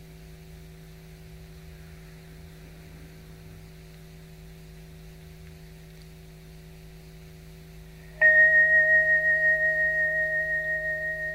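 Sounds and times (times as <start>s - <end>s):
small bell ringing: 8.2s - 11.3s.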